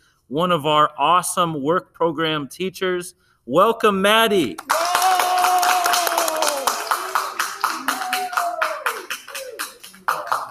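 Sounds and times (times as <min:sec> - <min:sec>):
speech: 0:00.3 - 0:04.8
audience applause: 0:04.6 - 0:10.4.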